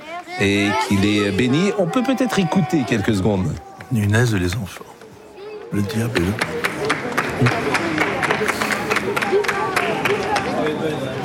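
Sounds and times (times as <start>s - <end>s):
speech: 0.4s - 5.0s, 5.7s - 6.7s, 7.4s - 7.8s
applause: 6.0s - 11.2s.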